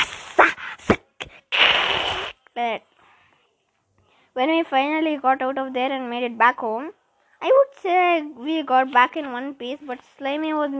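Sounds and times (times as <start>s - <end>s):
person imitating a cat hissing: 0.0s - 2.4s
speech: 2.6s - 2.9s, 4.4s - 10.7s.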